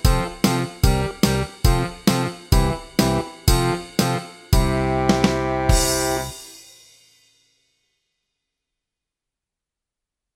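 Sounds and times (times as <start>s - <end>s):
rockhouse blues track: 0.0s - 6.5s.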